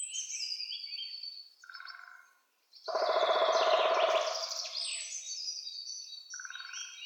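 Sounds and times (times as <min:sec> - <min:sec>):
woodpeckers Picidae: 0:02.9 - 0:05.1.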